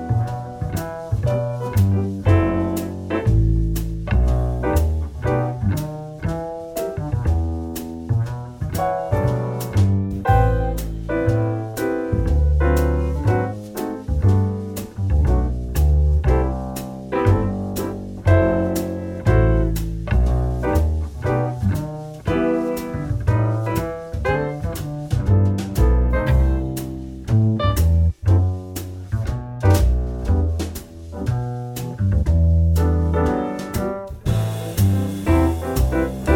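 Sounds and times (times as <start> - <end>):
backing track: 0.0 - 36.3.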